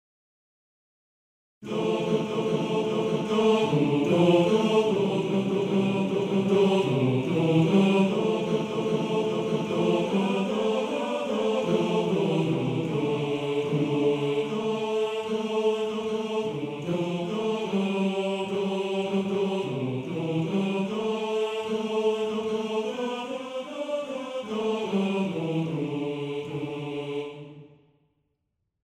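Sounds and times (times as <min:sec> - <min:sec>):
choir singing: 0:01.6 - 0:27.9.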